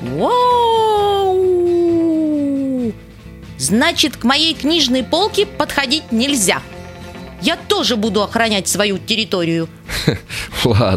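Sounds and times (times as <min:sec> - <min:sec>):
speech: 0:00.0 - 0:00.5, 0:03.6 - 0:06.7, 0:07.4 - 0:10.9
voice imitating a wolf howl: 0:00.0 - 0:03.0.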